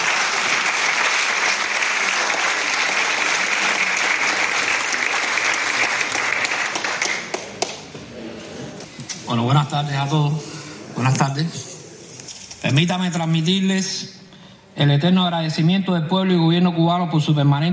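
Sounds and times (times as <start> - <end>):
audience applause: 0.0 - 8.1
speech: 9.3 - 11.6, 12.6 - 14.2, 14.8 - 17.7.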